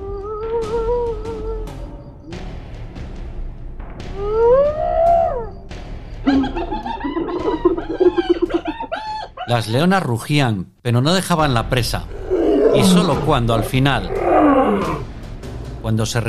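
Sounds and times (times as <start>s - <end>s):
hyenas howling and laughing: 0.0s - 2.5s, 4.1s - 5.6s, 6.3s - 9.8s, 12.1s - 15.0s
speech: 9.5s - 12.2s, 12.8s - 15.1s, 15.8s - 16.2s.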